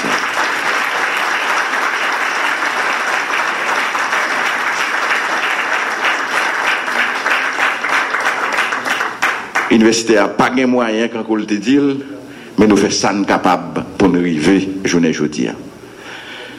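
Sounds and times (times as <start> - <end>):
crowd applause at a university event: 0.0 - 9.8
speech: 9.8 - 15.7.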